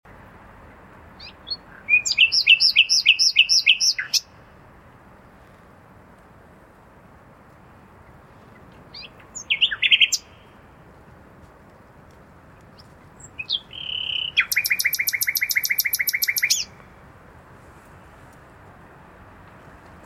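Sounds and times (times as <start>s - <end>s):
common nightingale singing: 1.2s - 4.5s, 8.0s - 10.6s, 12.5s - 16.9s.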